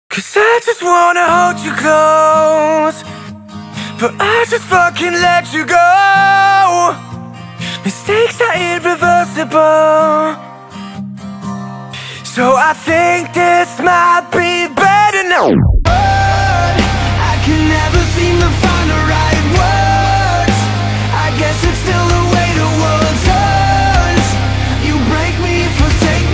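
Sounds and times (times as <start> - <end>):
pop rock music: 0.1 - 10.9, 12.0 - 26.3.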